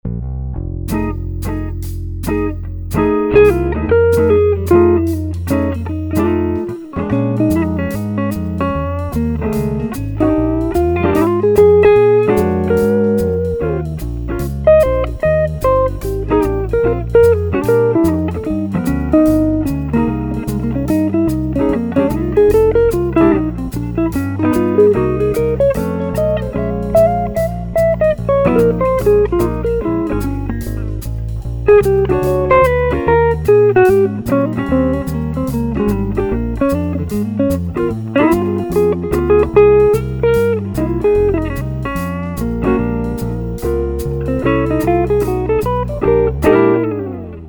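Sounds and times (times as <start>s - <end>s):
clean blues electric guitars: 0.9s - 47.4s.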